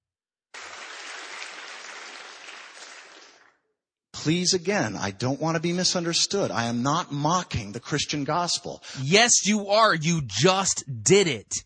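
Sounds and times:
audience applause: 0:00.6 - 0:03.5
speech: 0:04.2 - 0:11.6.

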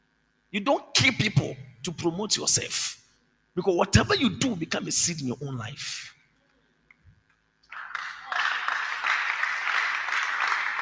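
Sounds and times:
speech: 0:00.5 - 0:03.0, 0:03.6 - 0:06.2
audience clapping: 0:07.6 - 0:10.8.

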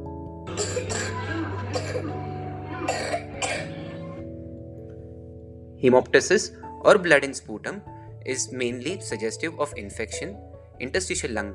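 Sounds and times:
laughter: 0:00.5 - 0:04.2
typical wet productive cough: 0:00.6 - 0:02.1, 0:02.8 - 0:03.8
speech: 0:05.8 - 0:11.5.

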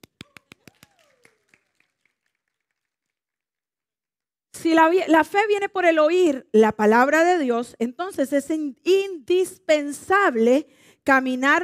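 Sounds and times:
audience applause: 0:00.3 - 0:03.2
speech: 0:04.6 - 0:11.6.

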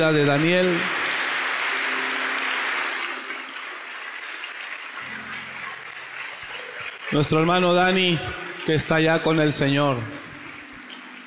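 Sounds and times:
speech: 0:00.0 - 0:01.0, 0:07.1 - 0:10.3
audience applause: 0:00.0 - 0:08.7.

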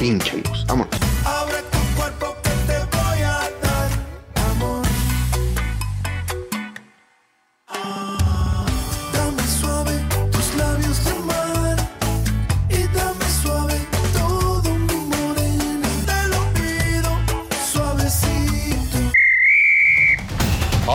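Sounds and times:
speech: 0:00.0 - 0:01.6
busy upbeat music: 0:00.0 - 0:06.9, 0:07.8 - 0:19.2, 0:20.3 - 0:20.9
referee's final whistle: 0:19.2 - 0:20.4.

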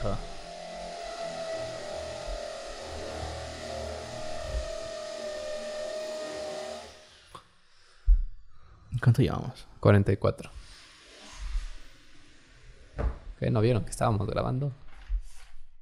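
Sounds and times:
speech: 0:00.0 - 0:00.3, 0:09.0 - 0:10.6, 0:13.4 - 0:14.8
power drill whirring: 0:00.0 - 0:07.4, 0:10.6 - 0:12.9.

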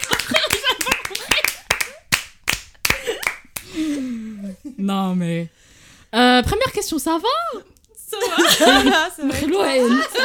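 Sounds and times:
small group clapping: 0:00.0 - 0:03.8
speech: 0:04.8 - 0:10.2.

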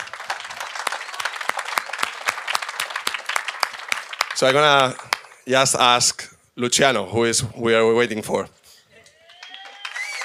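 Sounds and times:
audience applause: 0:00.0 - 0:05.5, 0:09.1 - 0:10.2
speech: 0:04.4 - 0:08.6.

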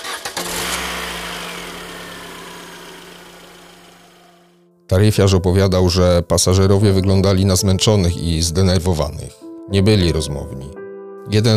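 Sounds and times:
car starter cranking with ignition key: 0:00.0 - 0:04.6
speech: 0:04.9 - 0:11.5.

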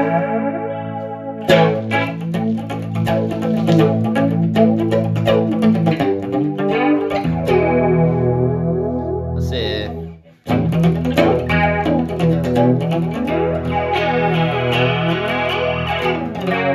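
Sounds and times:
guitar through super chorus and vintage flanger effect: 0:00.0 - 0:16.7.

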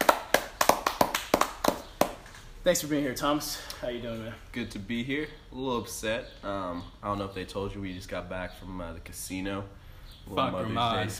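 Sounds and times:
round of applause: 0:00.0 - 0:02.2
speech: 0:02.6 - 0:11.1.

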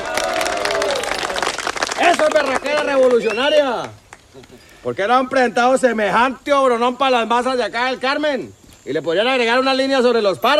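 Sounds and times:
audience applause: 0:00.0 - 0:04.0
speech: 0:02.2 - 0:10.5.

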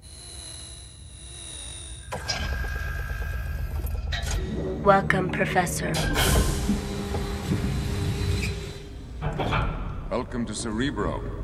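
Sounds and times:
X-Men sci-fi door closing sound effect: 0:02.0 - 0:10.8
speech: 0:04.4 - 0:06.9, 0:09.4 - 0:11.4.

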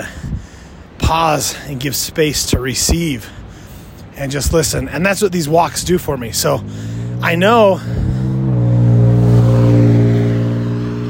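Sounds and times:
speech: 0:01.1 - 0:03.4, 0:04.2 - 0:08.0
car passing by: 0:06.3 - 0:11.0.

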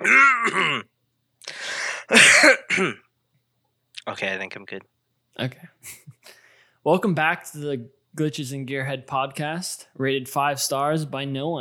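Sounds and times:
coughing: 0:00.0 - 0:00.9, 0:02.0 - 0:03.1
throat clearing: 0:00.0 - 0:00.9
speech: 0:02.4 - 0:03.0, 0:04.1 - 0:11.6.

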